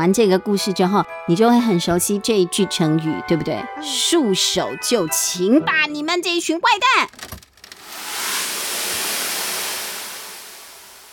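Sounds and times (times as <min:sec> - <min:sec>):
speech: 0:00.0 - 0:07.4
water being poured down: 0:07.5 - 0:11.1.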